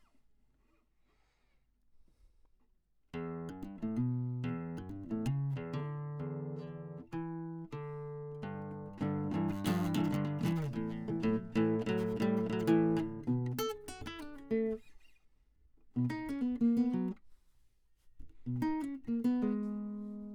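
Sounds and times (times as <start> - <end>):
classical guitar: 3.1 - 15.2, 15.9 - 17.2, 18.2 - 20.3.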